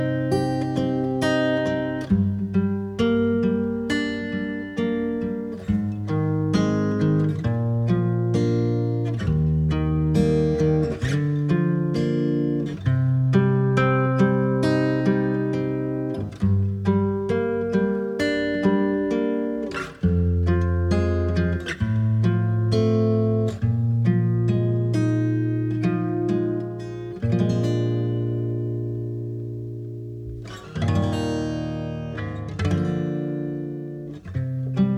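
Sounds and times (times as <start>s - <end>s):
instrumental music: 0.0s - 34.9s.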